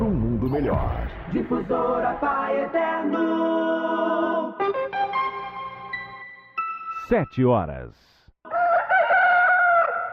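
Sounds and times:
speech: 0.5 - 4.8, 7.1 - 8.1
rooster crowing: 8.5 - 10.1.

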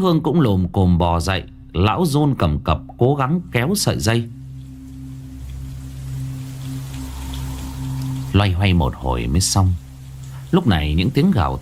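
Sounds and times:
speech: 0.0 - 4.4, 8.3 - 9.8, 10.5 - 11.6
rain falling: 3.2 - 11.6.

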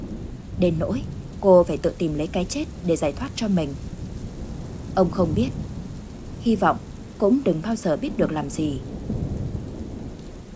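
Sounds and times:
steady drizzling rain: 0.0 - 10.5
speech: 0.6 - 3.9, 5.0 - 5.6, 6.4 - 9.1.

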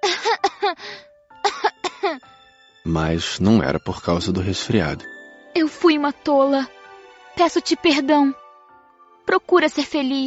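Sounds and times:
voice imitating small coughs: 0.0 - 2.2
speech: 2.8 - 5.2, 6.0 - 6.8, 7.4 - 8.4, 9.3 - 10.2.

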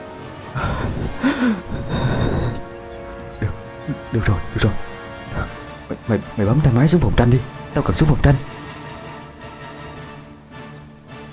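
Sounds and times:
deep breathing in and out: 0.5 - 5.9
speech: 1.4 - 2.0, 4.1 - 4.9, 6.1 - 8.6.

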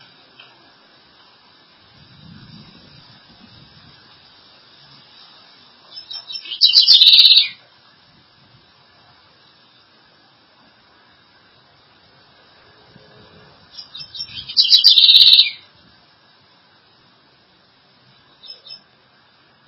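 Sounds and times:
southern house wren singing: 5.8 - 7.6, 13.7 - 15.7, 18.3 - 19.0.

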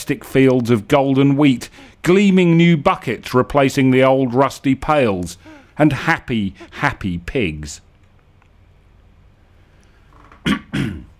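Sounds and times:
speech: 0.1 - 7.9, 10.4 - 10.7
person coughing: 10.4 - 11.1.

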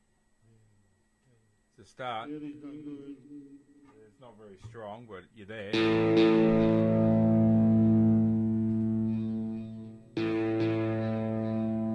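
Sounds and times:
speech: 1.8 - 7.1
distorted electric guitar chord played through effects pedals: 5.7 - 11.9.

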